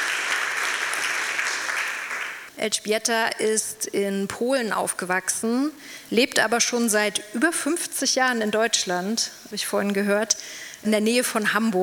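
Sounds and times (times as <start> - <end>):
audience applause after a talk about a forced labour camp in Leipzig: 0.0 - 2.5
speech: 2.6 - 11.8.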